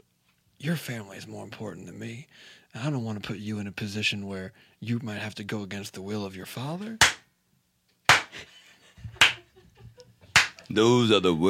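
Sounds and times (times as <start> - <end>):
speech: 0.6 - 7.2, 10.7 - 11.4
steel robotic arm clapping: 7.0 - 7.2, 10.4 - 10.6.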